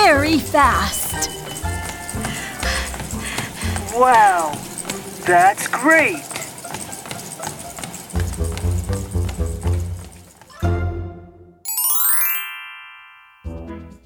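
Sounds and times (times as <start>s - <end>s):
horse hooves clip-clopping as Grandpa rides: 0.0s - 10.6s
speech: 0.4s - 1.9s, 3.9s - 6.4s
bright ringing tones: 11.7s - 13.5s.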